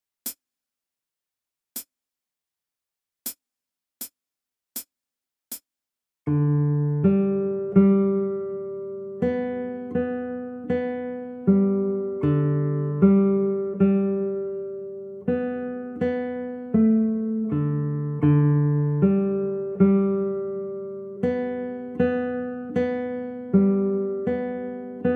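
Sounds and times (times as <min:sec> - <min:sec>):
guitar dance song: 0:06.3 - 0:25.1.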